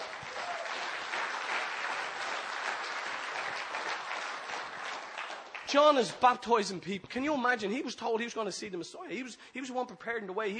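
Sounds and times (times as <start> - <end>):
audience clapping: 0.0 - 6.6
speech: 5.7 - 10.5.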